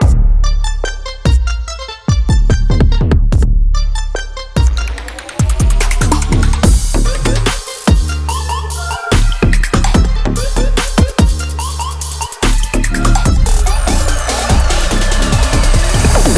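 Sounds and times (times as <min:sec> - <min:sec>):
podcast prelude music loop: 0:00.0 - 0:16.3.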